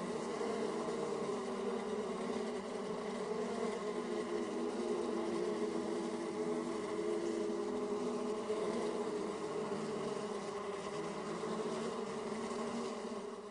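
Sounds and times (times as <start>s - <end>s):
bees buzzing: 0.0s - 13.4s.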